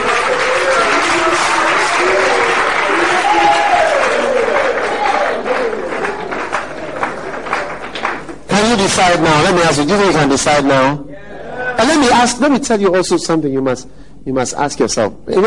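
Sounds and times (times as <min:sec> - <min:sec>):
audience applause: 0:00.0 - 0:09.3
speech: 0:09.0 - 0:11.1, 0:11.8 - 0:15.4.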